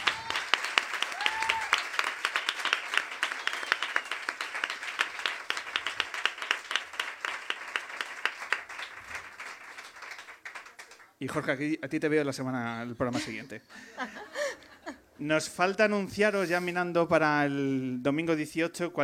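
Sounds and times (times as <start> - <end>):
applause: 0.0 - 11.3
speech: 11.2 - 14.3, 15.2 - 19.0.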